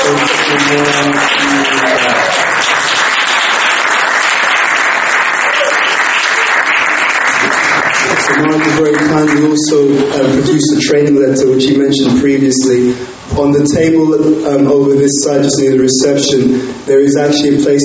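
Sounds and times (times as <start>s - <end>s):
audience applause: 0.0s - 10.2s
speech: 0.7s - 1.6s, 8.8s - 17.8s.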